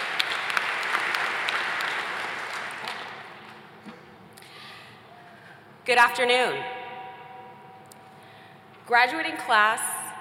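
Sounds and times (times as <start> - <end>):
audience applause: 0.0 - 3.4
speech: 5.9 - 6.7, 8.9 - 10.0.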